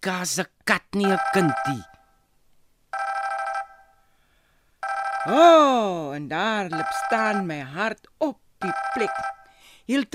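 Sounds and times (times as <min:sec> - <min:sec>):
speech: 0:00.0 - 0:01.9, 0:05.2 - 0:10.1
telephone ringing: 0:01.0 - 0:02.2, 0:02.9 - 0:04.0, 0:04.8 - 0:05.5, 0:06.7 - 0:07.5, 0:08.6 - 0:09.5.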